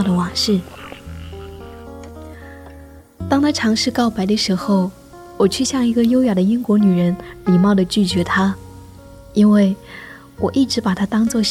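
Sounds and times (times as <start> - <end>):
speech: 0.0 - 0.8, 3.3 - 8.6, 9.3 - 11.4
frogs croaking from a forest pond: 0.0 - 2.8.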